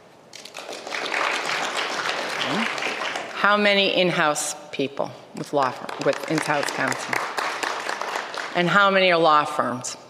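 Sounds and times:
crowd applauding: 0.4 - 3.5, 5.8 - 8.8
speech: 3.4 - 7.3, 8.6 - 10.0.

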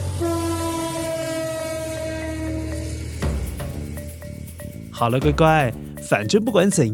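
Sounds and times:
long slow train horn blast: 0.0 - 4.8
speech: 5.0 - 6.9.

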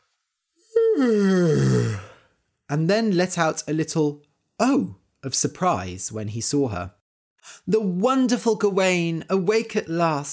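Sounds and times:
person imitating a leisurely yawn: 0.8 - 2.3
speech: 1.0 - 2.0, 2.7 - 10.3.

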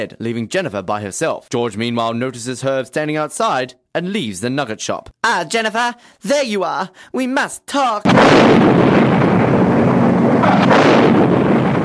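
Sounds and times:
speech: 0.0 - 11.3
massive explosion rumble: 8.0 - 11.8.

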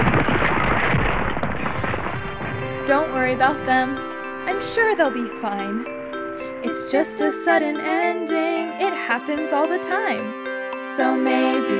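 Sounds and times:
loud roar of an avalanche: 0.0 - 6.6
speech: 2.9 - 6.0, 6.6 - 11.7.

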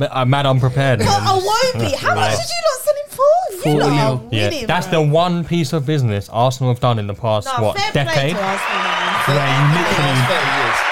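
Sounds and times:
speech: 0.0 - 2.9, 3.5 - 10.9
people clapping: 7.8 - 10.9.

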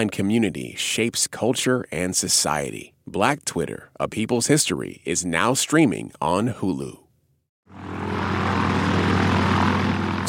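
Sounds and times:
speech: 0.0 - 7.0
airplane engine in flight: 7.7 - 10.2.

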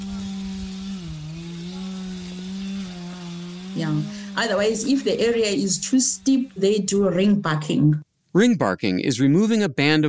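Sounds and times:
chainsaw: 0.0 - 5.8
speech: 3.8 - 10.0.

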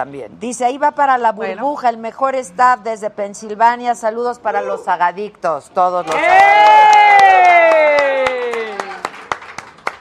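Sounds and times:
speech: 0.0 - 6.9
live studio audience cheering: 6.0 - 9.4
hand claps: 6.1 - 10.0.

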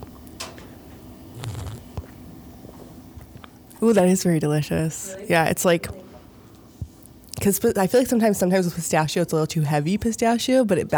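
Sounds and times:
low hum: 0.0 - 10.9
quiet sips of an iced coffee drink: 1.3 - 3.8
soft brief slurping and swallowing: 1.3 - 3.8
speech: 3.8 - 6.0, 7.4 - 10.9.

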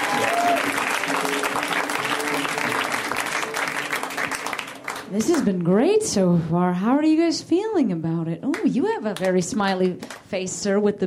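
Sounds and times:
audience at a comedy show applauding a comedian: 0.0 - 5.6
speech: 5.1 - 11.0.

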